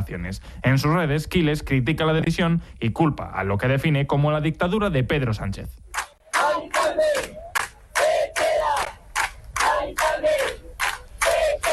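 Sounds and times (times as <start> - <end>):
speech: 0.0 - 5.8
crowd of hundreds of neighbours shouting: 6.3 - 9.0, 9.6 - 11.7.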